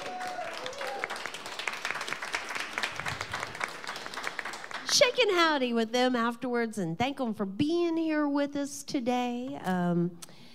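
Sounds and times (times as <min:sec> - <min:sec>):
audience round of applause: 0:00.0 - 0:05.0
speech: 0:04.9 - 0:10.3.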